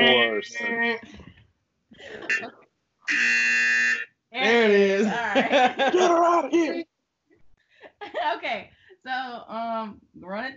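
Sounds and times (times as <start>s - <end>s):
speech: 0.4s - 1.3s, 1.9s - 3.8s, 4.4s - 6.8s, 8.1s - 10.5s
laughter: 2.0s - 2.5s, 4.4s - 6.8s, 8.0s - 8.5s
buzzer sound effect: 3.1s - 4.1s.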